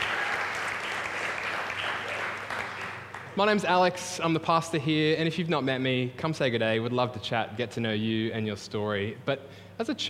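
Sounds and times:
crowd clapping: 0:00.0 - 0:03.7
speech: 0:03.4 - 0:10.0.

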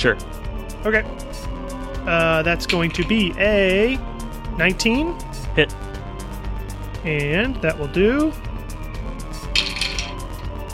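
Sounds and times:
speech: 0:00.0 - 0:05.9, 0:07.0 - 0:08.4
many dice rolling: 0:09.6 - 0:10.2.

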